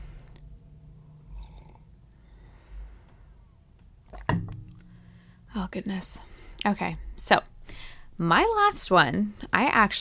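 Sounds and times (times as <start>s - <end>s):
sipping tea: 1.2s - 1.9s, 3.8s - 5.0s
speech: 5.6s - 9.9s.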